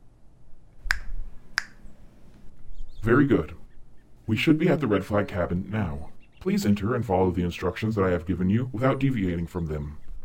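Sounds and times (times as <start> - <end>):
faint low hum: 0.0 - 10.2
fingers snapping: 0.8 - 1.9
speech: 3.0 - 3.6, 4.3 - 10.0.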